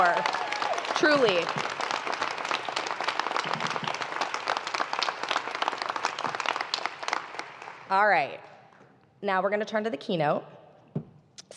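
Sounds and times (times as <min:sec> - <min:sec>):
sustained audience applause: 0:00.0 - 0:07.9
speech: 0:01.0 - 0:01.8, 0:07.9 - 0:08.5, 0:09.2 - 0:10.6.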